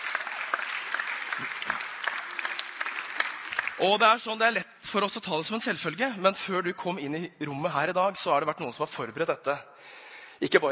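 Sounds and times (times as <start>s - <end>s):
audience applause: 0.0s - 4.0s
speech: 3.8s - 10.7s.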